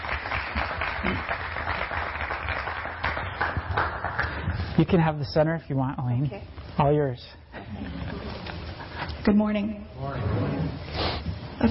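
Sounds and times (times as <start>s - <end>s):
audience applause welcoming a woman at a morning talk: 0.0s - 4.6s
speech: 4.8s - 8.0s, 9.2s - 11.6s.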